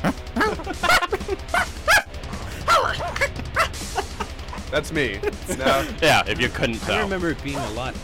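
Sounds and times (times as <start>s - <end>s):
steady pulsing music beat: 0.0s - 8.0s
laughter: 0.2s - 7.9s
high-pitched yapping dog barks in a song: 0.4s - 2.1s, 2.7s - 3.8s, 6.7s - 7.9s
speech: 4.7s - 8.0s.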